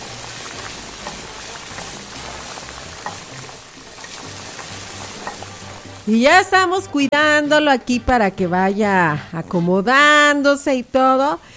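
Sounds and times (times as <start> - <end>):
breaded milanesa de migajón frying in hot oil: 0.0 - 6.1
speech: 6.1 - 11.5.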